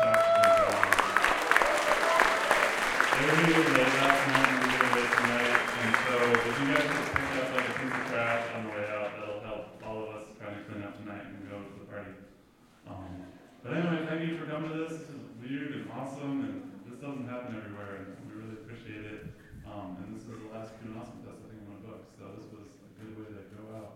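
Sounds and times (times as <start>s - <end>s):
crowd applause: 0.0s - 9.4s
people cheering: 0.0s - 9.4s
speech: 3.2s - 18.2s.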